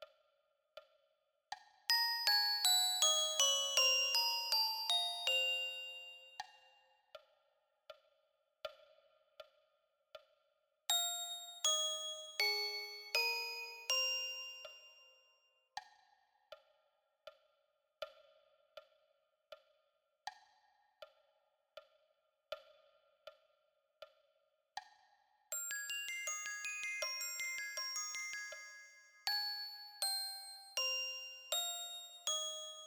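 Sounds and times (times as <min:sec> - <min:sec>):
glockenspiel: 0:01.9 - 0:06.8, 0:10.9 - 0:15.4, 0:25.5 - 0:32.8.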